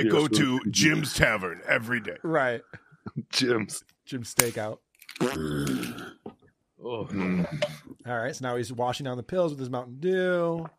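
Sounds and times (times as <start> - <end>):
speech: 0.0 - 6.2, 6.8 - 10.7
man burping: 5.2 - 6.3, 7.0 - 7.9.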